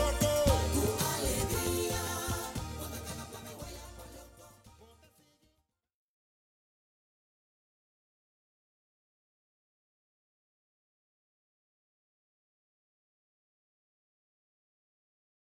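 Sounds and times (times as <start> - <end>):
Brazilian music at a building site: 0.0 - 5.5.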